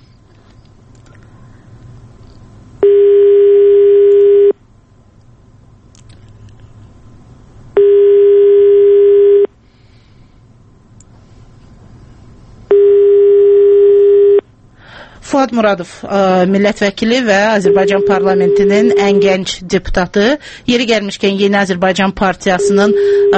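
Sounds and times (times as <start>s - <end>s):
telephone ringback tones while a call is being placed: 2.8s - 4.6s, 7.8s - 9.5s, 12.7s - 14.4s, 17.6s - 19.4s, 22.6s - 23.3s
speech: 15.4s - 23.3s.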